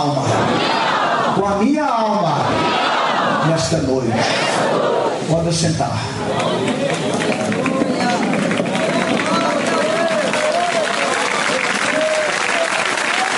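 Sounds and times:
speech: 0.0s - 0.4s, 1.4s - 7.0s
murmuring voices: 0.0s - 13.3s
audience clapping: 6.3s - 13.3s.

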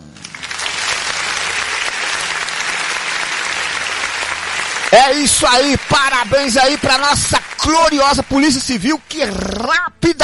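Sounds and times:
applause sound effect played by a production team: 0.0s - 9.6s
speech: 4.9s - 10.2s.

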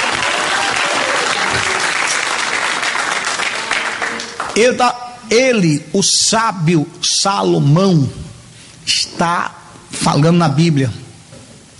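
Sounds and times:
applause: 0.0s - 4.9s
speech: 1.5s - 1.8s, 4.6s - 8.3s, 8.9s - 11.0s.

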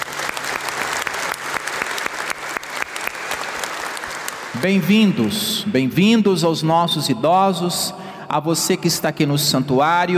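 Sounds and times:
audience applause for the elderly: 0.0s - 4.6s
speech: 4.6s - 10.1s.

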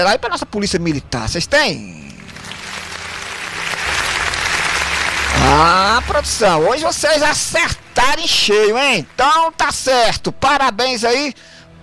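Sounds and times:
speech: 0.0s - 2.1s, 5.5s - 11.5s
applause from a crowd: 2.0s - 9.9s.

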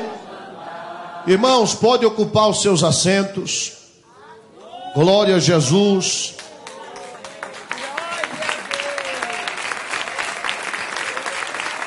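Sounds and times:
speech: 1.2s - 3.8s, 5.0s - 6.4s
audience clapping: 6.2s - 11.8s.

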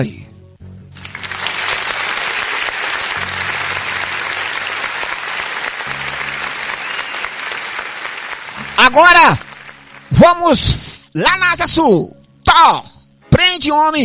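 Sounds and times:
speech: 0.0s - 0.2s, 8.9s - 9.5s, 10.1s - 14.0s
applause sound effect: 0.9s - 10.8s.

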